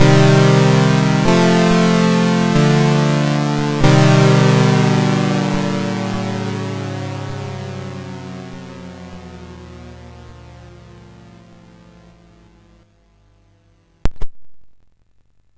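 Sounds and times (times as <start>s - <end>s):
MOS6581R4 SID chip music: 0.0s - 11.2s.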